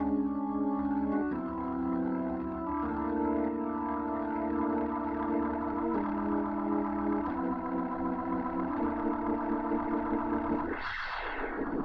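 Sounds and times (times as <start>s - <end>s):
organ: 0.0s - 11.8s.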